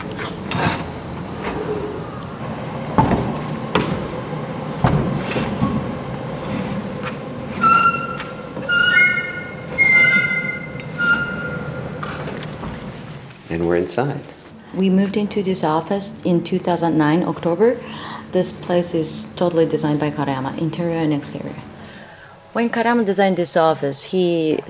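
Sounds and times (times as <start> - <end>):
heavy metal door 8.4 meters weighing under a ton grinding: 0.0 - 13.3
metallic clunks: 2.9 - 13.3
high metallic squeal: 7.0 - 12.6
speech: 13.7 - 21.6, 22.6 - 24.6.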